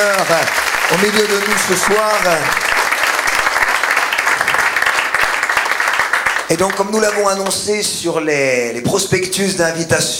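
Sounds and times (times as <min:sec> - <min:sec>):
speech: 0:00.0 - 0:02.6, 0:06.5 - 0:10.1
audience applause: 0:00.0 - 0:07.6.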